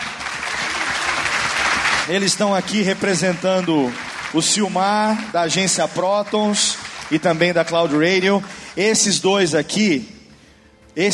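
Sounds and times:
audience applause: 0:00.0 - 0:08.5
speech: 0:02.1 - 0:10.2.

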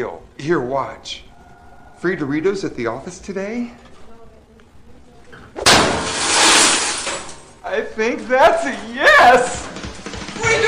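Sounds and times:
speech: 0:00.0 - 0:01.2, 0:02.0 - 0:03.9, 0:07.7 - 0:09.8, 0:10.4 - 0:10.6
snow globe smashing through vending machine: 0:05.7 - 0:07.5.

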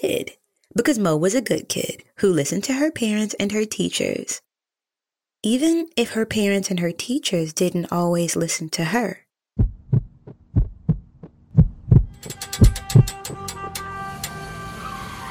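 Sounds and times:
speech: 0:00.0 - 0:04.5, 0:05.4 - 0:09.7
heartbeat: 0:09.6 - 0:13.1.

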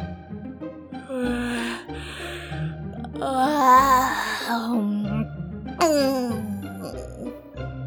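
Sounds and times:
person acting out a big yawn: 0:01.1 - 0:04.7, 0:05.8 - 0:07.3
speech: 0:03.2 - 0:05.0.

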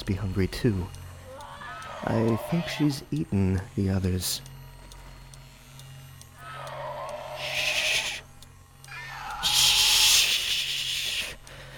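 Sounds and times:
speech: 0:00.1 - 0:01.0, 0:02.0 - 0:04.5
creature hissing in a cooling tank: 0:06.4 - 0:08.2, 0:08.9 - 0:11.3.

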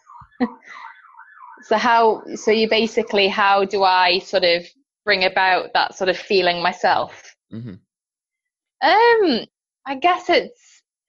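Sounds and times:
emergency vehicle siren: 0:00.0 - 0:04.3
speech: 0:00.4 - 0:00.9, 0:01.6 - 0:07.8, 0:08.8 - 0:10.8.

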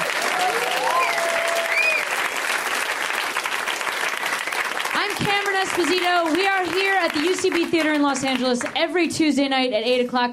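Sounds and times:
whoops and cheers: 0:00.0 - 0:02.2
live audience applause: 0:00.0 - 0:08.8
speech: 0:05.6 - 0:10.3.

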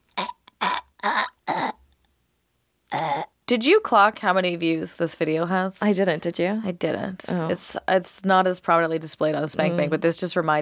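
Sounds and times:
person imitating choking: 0:00.0 - 0:01.8, 0:02.9 - 0:03.4
speech: 0:03.5 - 0:10.6.

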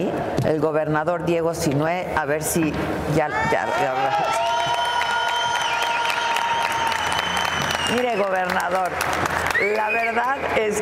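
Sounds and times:
speech: 0:00.0 - 0:04.5, 0:07.9 - 0:10.8
crowd cheering and shouting: 0:03.2 - 0:08.4
loud applause: 0:03.3 - 0:10.8
high whistles: 0:05.2 - 0:08.5.

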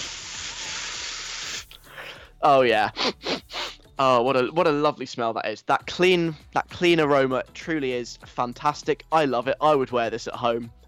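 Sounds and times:
Right Guard 48-hour aerosol antiperspirant can spraying: 0:00.0 - 0:01.9
speech: 0:02.4 - 0:03.4, 0:04.0 - 0:10.8.

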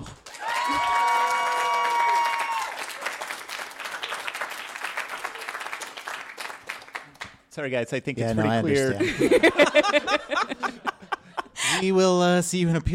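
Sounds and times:
live audience applause: 0:00.0 - 0:07.4
speech: 0:07.6 - 0:10.9, 0:11.8 - 0:12.9
laughter: 0:08.4 - 0:12.0.

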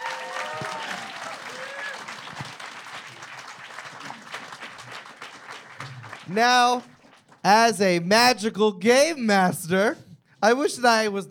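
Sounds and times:
audience applause for debaters: 0:00.0 - 0:07.4
speech: 0:06.3 - 0:11.2.

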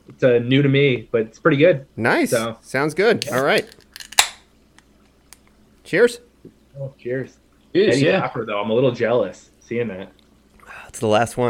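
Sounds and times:
speech: 0:00.2 - 0:03.8, 0:05.9 - 0:11.4
beer can cracked open: 0:03.2 - 0:05.4.

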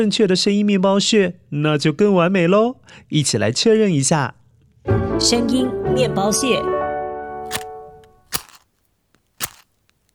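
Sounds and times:
speech: 0:00.0 - 0:06.8
match being struck and lit: 0:08.3 - 0:10.1.

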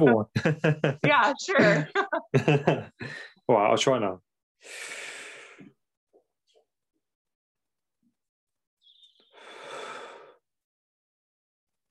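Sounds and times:
speech: 0:00.0 - 0:05.0
laughter: 0:00.1 - 0:03.2
slow breaths during a guided breathing exercise: 0:03.0 - 0:03.4, 0:04.6 - 0:05.8, 0:09.1 - 0:10.4.

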